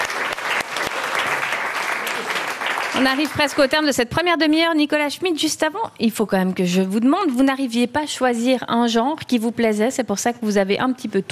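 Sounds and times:
crowd applause for the guest: 0.0 - 3.7
speech: 3.0 - 11.3.

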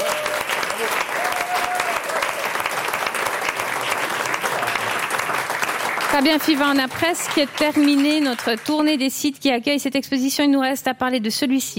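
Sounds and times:
audience applause: 0.0 - 9.0
speech: 6.1 - 11.7.

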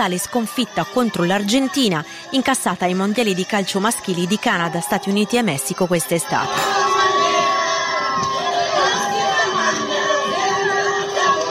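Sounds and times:
speech: 0.0 - 6.8
crowd cheering welcoming home national football team: 0.0 - 11.4.

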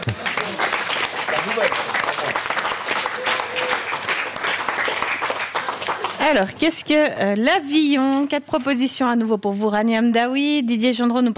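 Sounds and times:
audience applause: 0.0 - 6.5
speech: 6.2 - 11.3.

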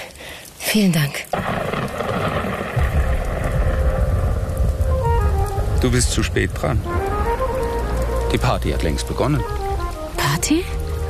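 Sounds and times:
heavy rain: 0.0 - 11.0
speech: 0.7 - 2.5, 5.8 - 7.1, 8.3 - 9.6, 10.4 - 10.8
deep rumbling thunder or storm wind: 1.3 - 9.0.

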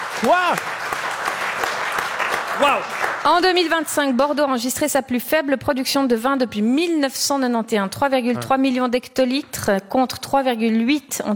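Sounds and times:
audience applause for a guest: 0.0 - 3.8
speech: 0.2 - 0.8, 2.6 - 11.3.

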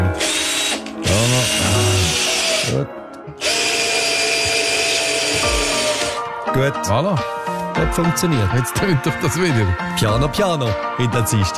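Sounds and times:
power tool whirring during piano screw adjustments: 0.0 - 6.3
speech: 6.6 - 11.5.

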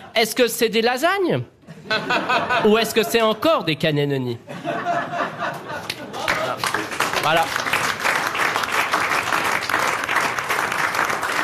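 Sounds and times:
speech: 0.2 - 5.2, 7.2 - 7.7
laughter: 1.7 - 3.4, 4.5 - 6.8
standing ovation from a game-show audience: 6.1 - 11.4.

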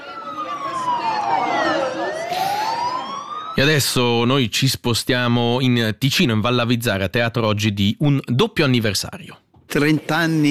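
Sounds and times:
air raid alarm siren: 0.0 - 4.0
speech: 3.6 - 10.4.

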